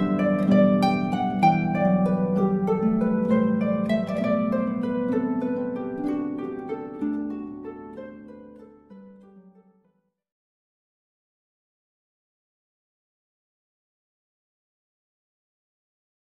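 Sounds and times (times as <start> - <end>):
harp playing: 0.0 - 9.8.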